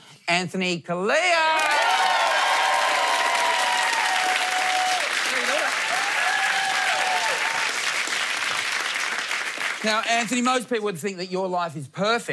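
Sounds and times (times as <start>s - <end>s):
speech: 0.3s - 2.1s, 9.8s - 12.3s
studio audience applauding: 1.4s - 10.5s.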